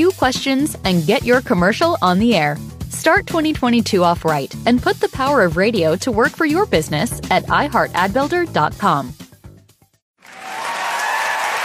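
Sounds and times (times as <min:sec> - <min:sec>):
speech: 0:00.0 - 0:09.2
applause: 0:10.2 - 0:11.6.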